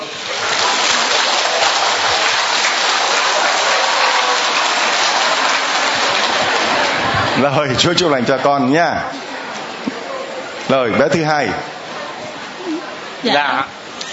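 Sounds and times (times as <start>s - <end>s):
audience round of applause: 0.0s - 10.1s
speech: 7.4s - 9.2s, 10.7s - 11.7s, 13.2s - 13.8s.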